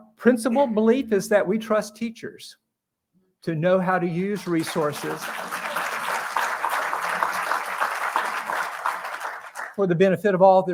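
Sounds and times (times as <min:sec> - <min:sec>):
speech: 0:00.2 - 0:02.6, 0:03.4 - 0:05.6, 0:09.8 - 0:10.7
audience applause: 0:04.3 - 0:09.8.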